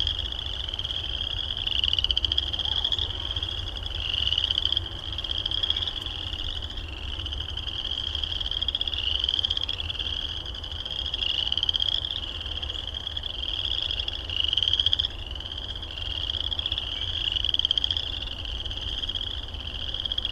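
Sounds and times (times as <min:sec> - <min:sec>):
frogs calling with short rising high chirps: 0:00.0 - 0:20.2.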